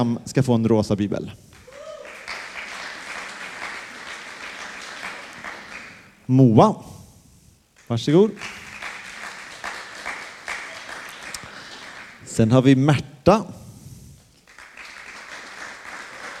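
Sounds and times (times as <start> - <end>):
speech: 0.0 - 1.5, 6.3 - 6.9, 7.9 - 8.5, 12.4 - 13.6
audience applause: 1.6 - 6.2, 8.4 - 12.2, 14.4 - 16.3.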